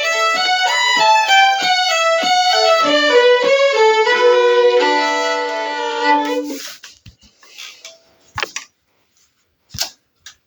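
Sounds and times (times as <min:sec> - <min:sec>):
medley of polkas: 0:00.0 - 0:06.7.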